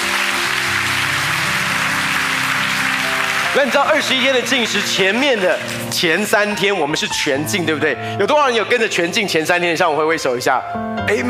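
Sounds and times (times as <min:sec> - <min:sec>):
audience applause: 0:00.0 - 0:06.3
speech: 0:03.6 - 0:11.2.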